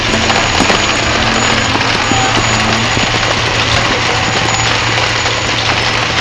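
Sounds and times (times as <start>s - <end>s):
conveyor running: 0.0s - 6.1s.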